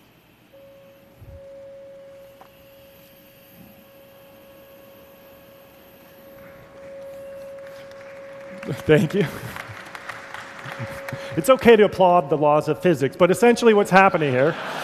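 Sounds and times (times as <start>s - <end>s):
550 hertz test tone: 0.6s - 9.6s, 10.6s - 12.9s
laughter: 7.7s - 8.3s
speech: 8.7s - 9.6s, 11.4s - 14.8s.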